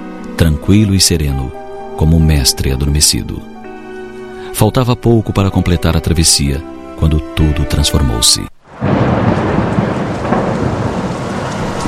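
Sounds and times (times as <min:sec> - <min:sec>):
speech: 0:00.4 - 0:03.6, 0:04.5 - 0:08.5
wind: 0:08.6 - 0:11.8
thunderstorm: 0:08.7 - 0:11.8.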